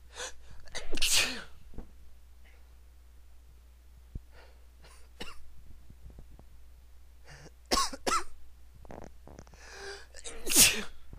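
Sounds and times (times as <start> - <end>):
man sneezing with buildups: 0.2 - 1.6, 10.1 - 11.0.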